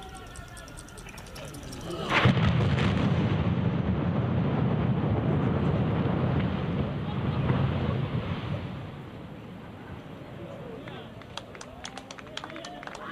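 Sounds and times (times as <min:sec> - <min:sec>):
building demolition blast rumbling roar: 0:02.1 - 0:10.3
sharp claps: 0:10.9 - 0:13.0.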